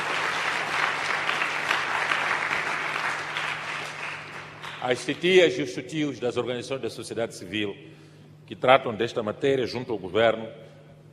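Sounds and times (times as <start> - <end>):
audience applause: 0.0 - 5.1
speech: 4.8 - 10.7.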